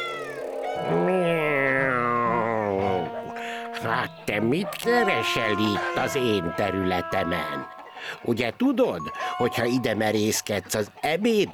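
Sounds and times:
cat meowing: 0:00.0 - 0:07.7
speech: 0:03.8 - 0:11.5.

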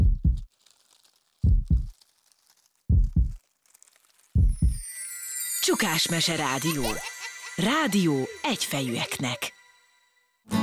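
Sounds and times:
loud heartbeat: 0:00.0 - 0:00.5, 0:01.4 - 0:01.9, 0:02.9 - 0:03.4, 0:04.4 - 0:04.8
speech: 0:05.7 - 0:09.5.

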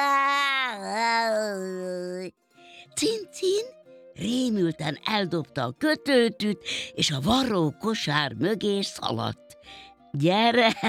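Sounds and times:
human voice imitating a cat's meow: 0:00.0 - 0:02.3
speech: 0:02.9 - 0:10.8.

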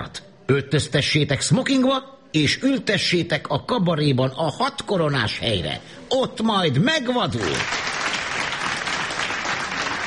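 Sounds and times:
speech: 0:00.1 - 0:08.0
cabaret audience applauding after a joke: 0:07.4 - 0:10.0.

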